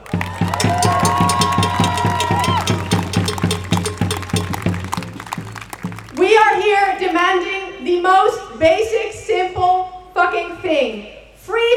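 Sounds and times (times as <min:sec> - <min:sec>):
crowd at a demonstration for migration freedom and refugee rights clapping and cheering: 0:00.0 - 0:07.5
speech: 0:07.4 - 0:09.2, 0:10.6 - 0:11.7.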